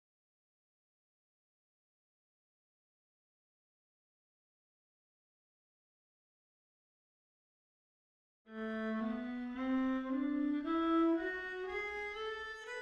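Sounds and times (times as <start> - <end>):
viola: 8.5 - 12.8.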